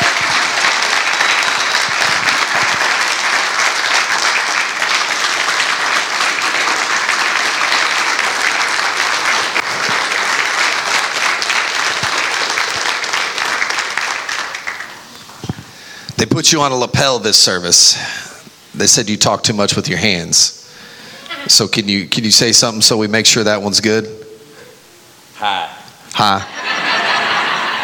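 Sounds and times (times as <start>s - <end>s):
church audience applause welcoming a guest onto the stage: 0.0s - 15.5s, 26.7s - 27.8s
speech: 16.5s - 18.2s, 18.8s - 20.6s, 21.4s - 24.2s, 25.4s - 26.8s
laughter: 26.2s - 27.8s.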